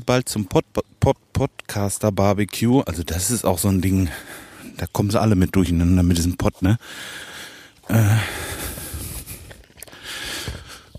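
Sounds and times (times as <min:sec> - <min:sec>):
speech: 0:00.0 - 0:07.3, 0:07.9 - 0:08.6
person panting while walking uphill: 0:04.1 - 0:04.8, 0:06.8 - 0:10.9.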